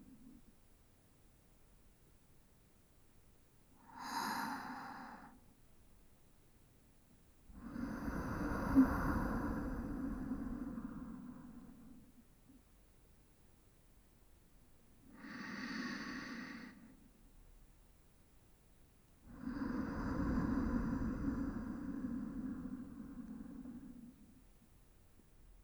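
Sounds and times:
sleep breathing on the left side: 3.8s - 5.4s, 7.6s - 12.0s, 15.1s - 17.0s, 19.3s - 24.3s.

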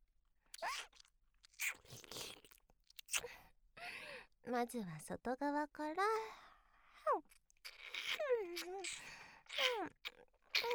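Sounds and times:
ASMR ear-eating mouth sounds: 0.6s - 3.3s, 7.7s - 10.7s
speech: 4.5s - 6.4s, 7.1s - 7.4s.

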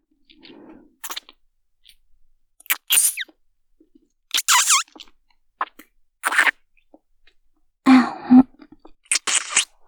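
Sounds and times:
tongue-entwined kissing: 1.0s - 1.3s, 2.6s - 3.3s, 4.3s - 5.1s, 6.2s - 6.6s, 9.1s - 9.8s.

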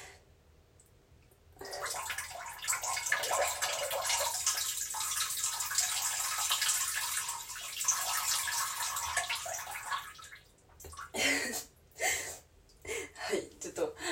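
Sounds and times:
person urinating into a toilet: 1.6s - 11.2s
person talking: 13.2s - 14.0s.

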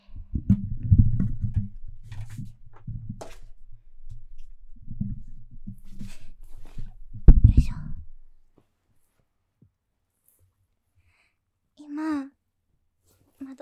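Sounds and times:
microphone handling noise: 0.0s - 8.4s.

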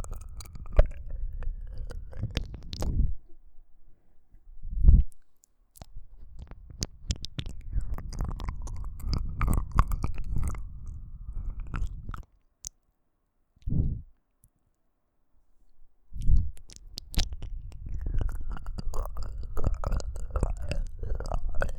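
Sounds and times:
ASMR ear licking sounds: 0.0s - 3.1s, 5.2s - 12.3s, 16.2s - 21.7s.

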